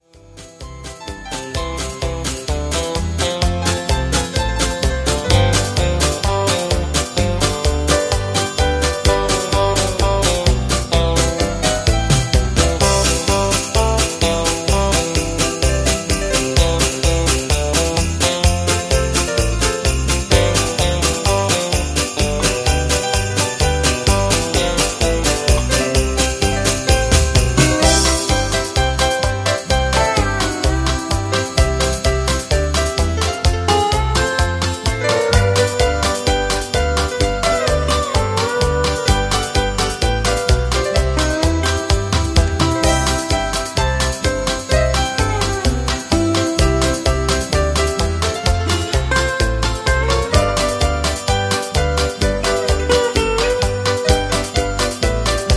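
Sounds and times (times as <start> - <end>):
music with strong melody: 0.0 - 55.5.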